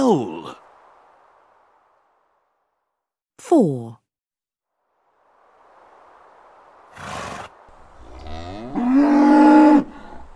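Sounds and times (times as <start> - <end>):
speech: 0.1 - 0.6, 3.5 - 4.0
bull bellowing: 8.0 - 10.3.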